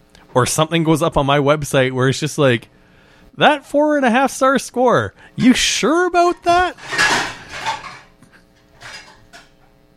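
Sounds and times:
speech: 0:00.4 - 0:02.8, 0:03.4 - 0:07.0
pots, pans and cutlery clattering in a kitchen while egg roll in a bowl is cooked: 0:06.3 - 0:08.2, 0:08.8 - 0:09.6.

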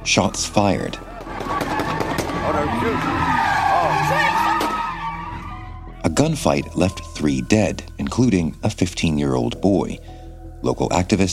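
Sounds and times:
sports car engines roaring: 0:00.0 - 0:05.5
sports cars spinning donuts with tires skidding: 0:00.0 - 0:06.2
speech: 0:00.1 - 0:01.1, 0:02.6 - 0:03.5, 0:06.2 - 0:11.3.

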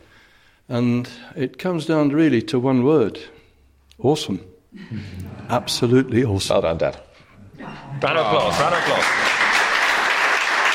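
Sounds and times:
speech: 0:00.7 - 0:03.4, 0:04.0 - 0:09.3
audience applause: 0:08.0 - 0:10.7.

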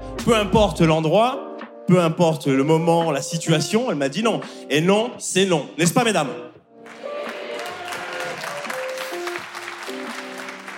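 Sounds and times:
speech: 0:00.2 - 0:06.5
audience applauding: 0:06.8 - 0:10.7
faint voices and cheers: 0:07.0 - 0:09.2.

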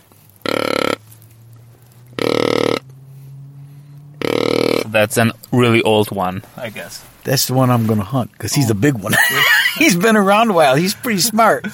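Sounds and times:
hand-held deer grunt call, end cupped by hand: 0:00.4 - 0:05.0
speech: 0:04.9 - 0:11.7
laughter: 0:08.9 - 0:10.2, 0:10.8 - 0:11.7.

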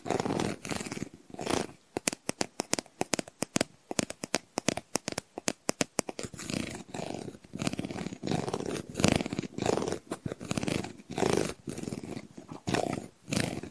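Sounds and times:
scratching on Christmas decorations: 0:00.0 - 0:13.6
tapping on Christmas decorations: 0:02.0 - 0:06.3.

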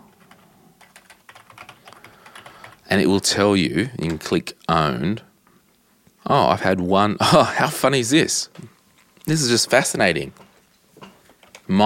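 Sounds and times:
typing an email address on a computer keyboard: 0:00.0 - 0:02.9, 0:10.4 - 0:11.7
speech: 0:02.9 - 0:05.3, 0:06.3 - 0:08.7, 0:09.3 - 0:10.4, 0:11.7 - 0:11.8.

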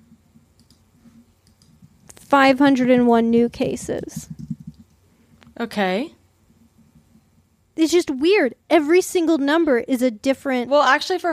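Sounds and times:
computer keyboard clicks: 0:00.5 - 0:02.2, 0:03.9 - 0:05.0
speech: 0:02.3 - 0:04.4, 0:05.6 - 0:06.2, 0:07.8 - 0:11.3.

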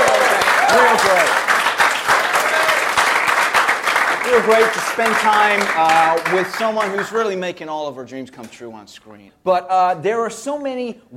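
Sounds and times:
crowd applauding: 0:00.0 - 0:07.2
speech: 0:04.3 - 0:11.1.

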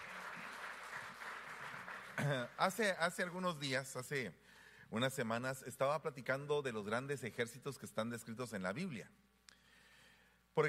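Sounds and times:
applause: 0:00.0 - 0:03.4
speech: 0:02.2 - 0:09.2.

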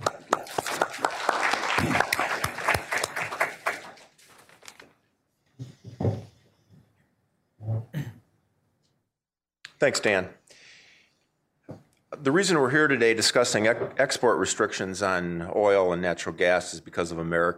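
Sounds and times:
audience applause welcoming a speaker to the podium: 0:00.0 - 0:04.6
throat clearing: 0:07.6 - 0:08.3
speech: 0:09.8 - 0:10.4, 0:12.2 - 0:17.5.

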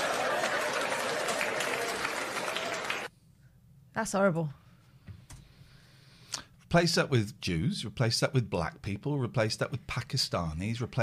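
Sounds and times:
audience applause: 0:00.0 - 0:03.1
speech: 0:04.0 - 0:04.6, 0:06.7 - 0:11.0.

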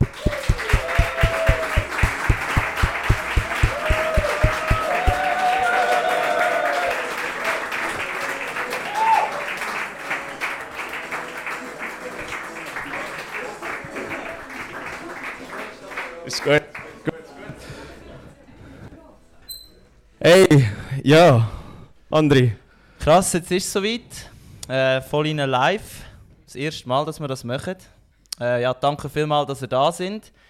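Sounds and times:
audience applause: 0:00.0 - 0:16.9
speech: 0:20.5 - 0:21.5, 0:22.1 - 0:30.4.

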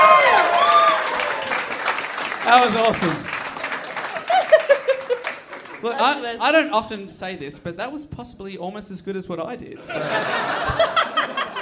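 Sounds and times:
audience clapping and cheering: 0:00.0 - 0:06.4
speech: 0:02.5 - 0:03.3, 0:05.8 - 0:11.1
laughter: 0:02.6 - 0:06.2, 0:09.8 - 0:11.5.

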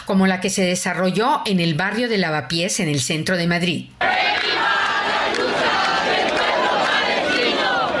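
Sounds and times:
speech: 0:00.1 - 0:05.4
protest crowd chanting and shouting a war cry: 0:04.0 - 0:07.9.

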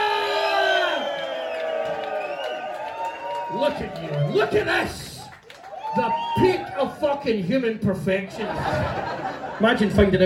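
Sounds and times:
audience cheering and whooping in Glasgow: 0:00.0 - 0:07.0
scattered clapping: 0:01.6 - 0:06.0
speech: 0:03.5 - 0:05.1, 0:06.0 - 0:10.2
laughter: 0:08.3 - 0:10.2.

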